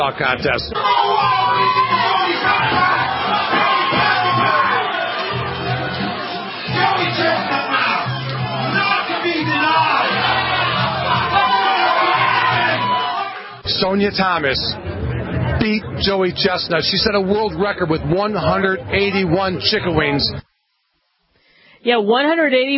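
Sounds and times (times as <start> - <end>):
speech: 0.0 - 3.7, 13.8 - 14.9, 15.6 - 20.4, 21.8 - 22.7
crowd cheering at chicken wing eating contest: 0.7 - 13.7.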